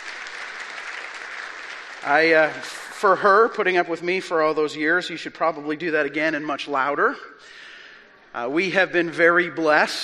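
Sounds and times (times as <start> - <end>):
audience clapping: 0.0 - 3.6
speech: 2.0 - 7.6, 8.4 - 10.0.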